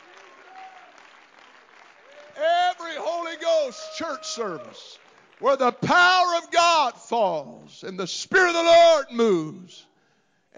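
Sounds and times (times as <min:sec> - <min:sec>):
audience clapping hands: 0:00.0 - 0:06.6
speech: 0:03.7 - 0:09.9.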